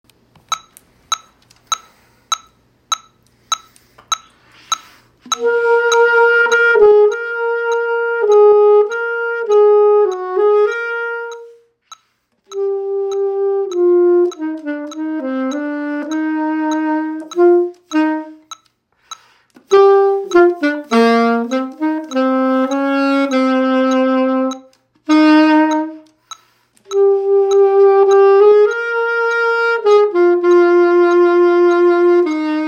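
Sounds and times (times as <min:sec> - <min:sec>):
symphonic band wind instruments playing for an audition: 0:05.2 - 0:11.7, 0:12.5 - 0:18.6, 0:19.6 - 0:26.3, 0:26.9 - 0:32.6.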